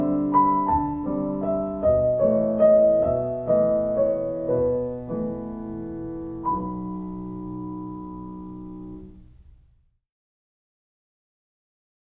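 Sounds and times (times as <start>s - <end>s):
waltz music: 0.0s - 9.4s.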